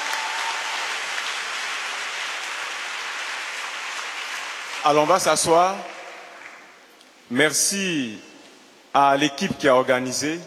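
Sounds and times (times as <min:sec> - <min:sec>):
church congregation applauding to acclaim the Lord: 0:00.0 - 0:06.9
speech: 0:04.8 - 0:05.9, 0:07.3 - 0:08.3, 0:09.0 - 0:10.4.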